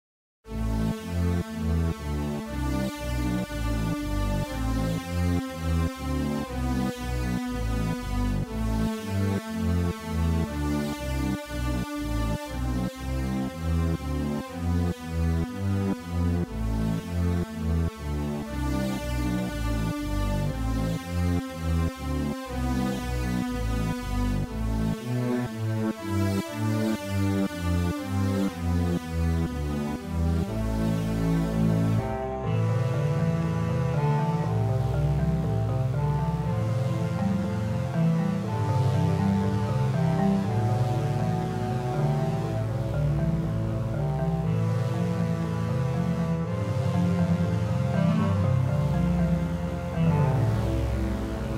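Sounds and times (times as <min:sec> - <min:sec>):
dark game over background music: 0:00.5 - 0:51.5.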